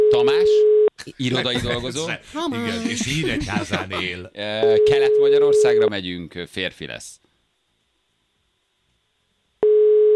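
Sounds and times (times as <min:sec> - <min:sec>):
speech: 0:00.1 - 0:07.2
laughter: 0:01.0 - 0:04.4
electronic telephone ringing tone during a call: 0:09.6 - 0:10.1.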